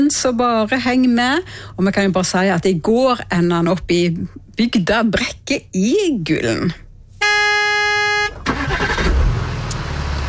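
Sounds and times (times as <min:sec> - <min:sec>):
speech: 0:00.0 - 0:06.8
car engine rumbling as it sets off from a fjord hotel in Brekke: 0:00.1 - 0:10.2
car horn blaring: 0:07.2 - 0:08.8.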